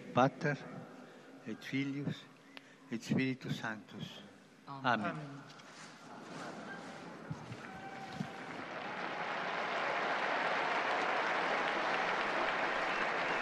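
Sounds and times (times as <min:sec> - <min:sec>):
speech: 0:00.2 - 0:00.8, 0:01.5 - 0:02.3, 0:02.9 - 0:05.6
crowd of faithful cheering: 0:07.2 - 0:13.4.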